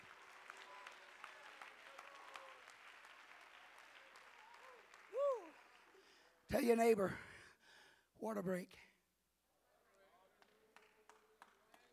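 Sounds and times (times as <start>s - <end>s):
audience clapping: 0.0s - 6.7s, 10.0s - 11.9s
speech: 6.5s - 7.3s, 8.2s - 8.9s.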